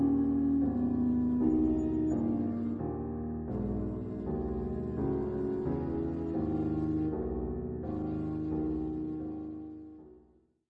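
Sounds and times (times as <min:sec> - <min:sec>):
flute quartet playing: 0:00.0 - 0:02.8
piano: 0:00.0 - 0:10.5.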